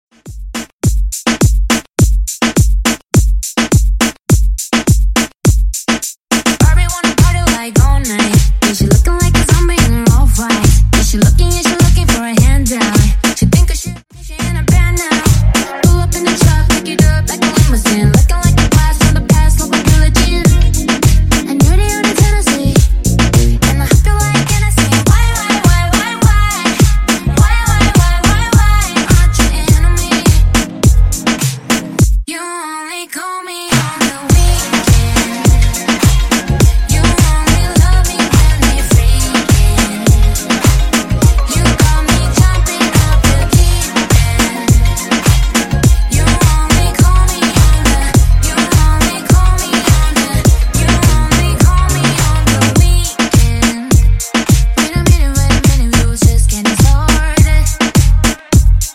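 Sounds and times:
moombahton drum beat: 0.1 - 32.3, 33.7 - 58.9.

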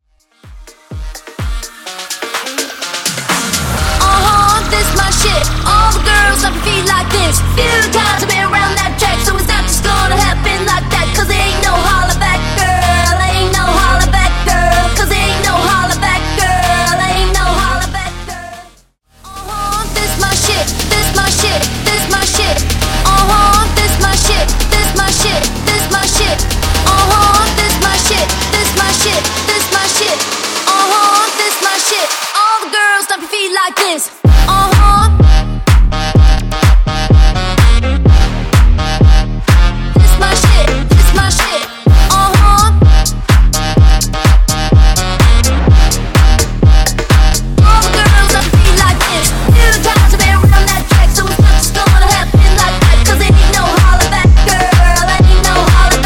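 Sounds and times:
126 BPM dance music: 0.2 - 56.0.

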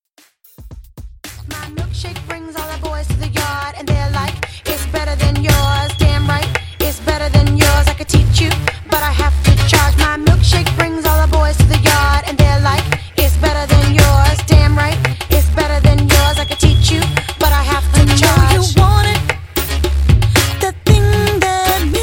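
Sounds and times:
hip hop R&B music: 0.1 - 22.0.

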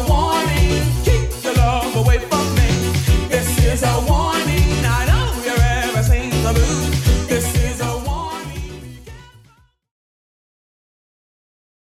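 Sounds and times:
80s drum machine beat at 120 bpm: 0.0 - 9.4.

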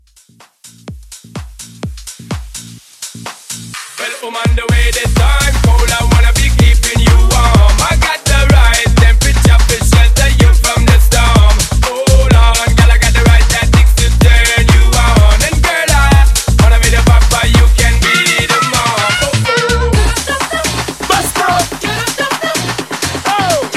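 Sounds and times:
vocal mashup: 3.7 - 23.7.

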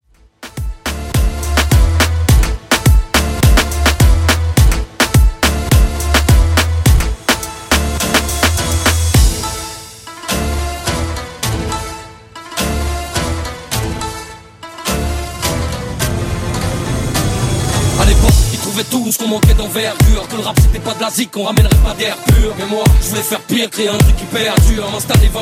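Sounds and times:
moombahton remix: 0.2 - 25.4.

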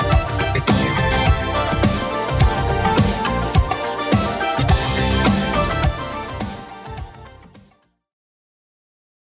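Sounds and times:
80s Redrum drum machine beat: 0.0 - 7.2.

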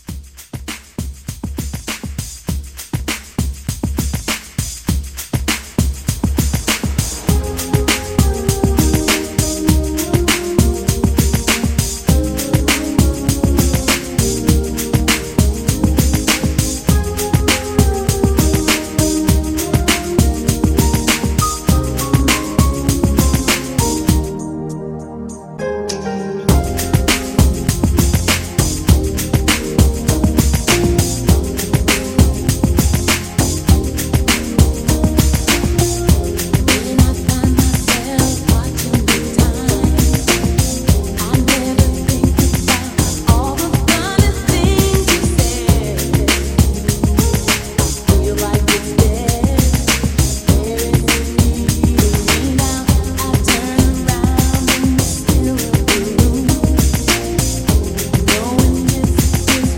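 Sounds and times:
70s drum beat: 0.0 - 24.3, 26.5 - 59.7.

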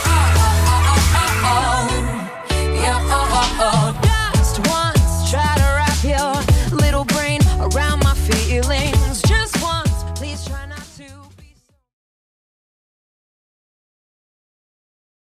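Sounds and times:
drum loop at 100 bpm: 0.0 - 2.0, 3.1 - 11.0.

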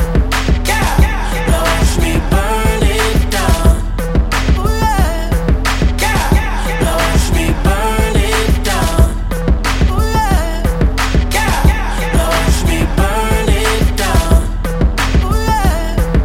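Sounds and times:
pop mixshow drum beat: 0.0 - 16.2.

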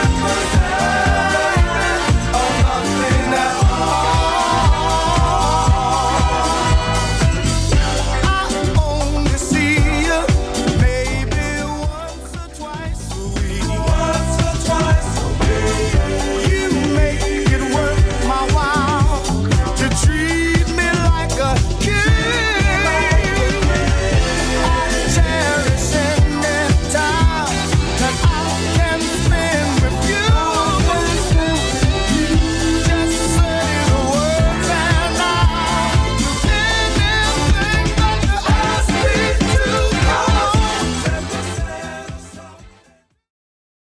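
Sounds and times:
clean 70s drum loop: 0.0 - 42.6.

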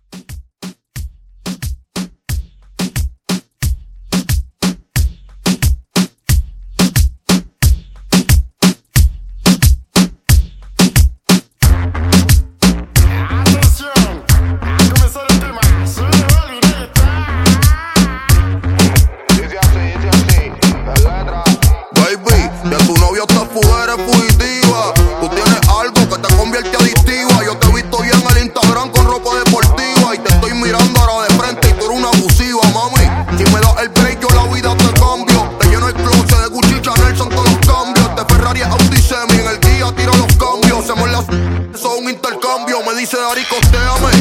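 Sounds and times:
Latin reggaeton drum groove at 90 BPM: 0.0 - 41.3, 41.9 - 44.1.

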